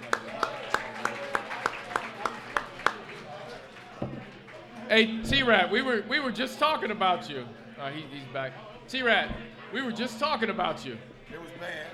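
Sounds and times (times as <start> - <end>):
applause for an arriving guest: 0.0 - 4.7
faint murmur of voices: 0.0 - 11.9
speech: 5.0 - 11.9.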